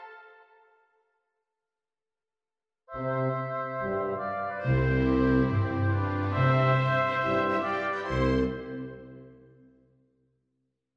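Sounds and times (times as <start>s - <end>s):
instrumental music: 3.3s - 9.4s.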